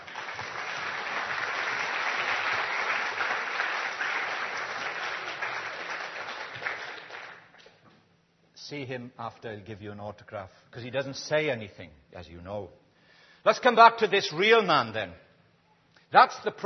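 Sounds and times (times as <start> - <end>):
audience applause: 0.0 - 7.6
speech: 8.7 - 12.8, 13.4 - 15.2, 16.1 - 16.6.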